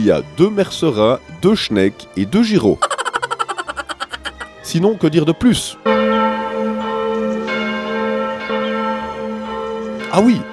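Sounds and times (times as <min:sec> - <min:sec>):
speech: 0:00.0 - 0:03.0, 0:04.7 - 0:05.9, 0:10.1 - 0:10.5
laughter: 0:02.8 - 0:04.5
school clock tower bell ringing: 0:05.8 - 0:10.5.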